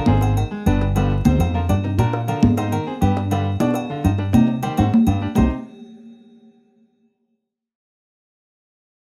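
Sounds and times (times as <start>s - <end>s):
salsa alto saxophone accompaniment: 0.0s - 5.7s.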